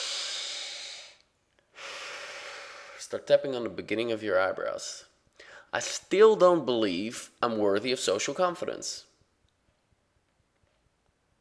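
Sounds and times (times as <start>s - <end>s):
deep breath during a guided tapping exercise: 0.0s - 3.1s, 5.3s - 5.8s
speech: 3.0s - 5.1s, 5.7s - 9.1s.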